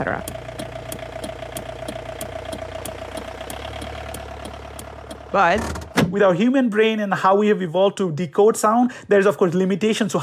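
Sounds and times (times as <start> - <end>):
speech: 0.0 - 0.4, 5.3 - 10.2
car motor running: 0.0 - 6.2.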